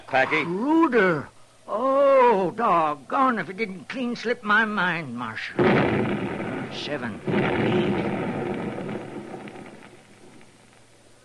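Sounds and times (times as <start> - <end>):
speech: 0.1 - 8.2
dynamite blasts bringing down rock in a mine shaft: 5.5 - 11.1.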